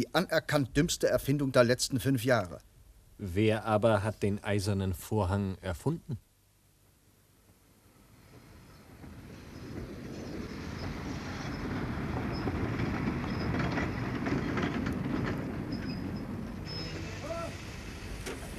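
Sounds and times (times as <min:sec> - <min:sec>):
speech: 0:00.0 - 0:06.3
Prague–Asch express train rumbling along rails: 0:08.1 - 0:18.5
high train wheel squeals: 0:08.7 - 0:18.5.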